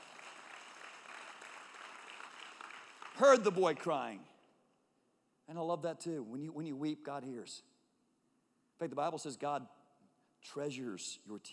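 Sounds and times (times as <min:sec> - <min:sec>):
single person clapping: 0:00.0 - 0:04.0
speech: 0:03.2 - 0:04.3, 0:05.5 - 0:07.7, 0:08.8 - 0:09.8, 0:10.4 - 0:11.5.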